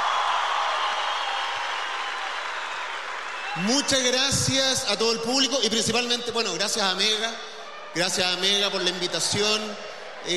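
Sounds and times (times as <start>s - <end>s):
spontaneous audience applause: 0.0s - 4.6s
speech: 3.6s - 10.3s.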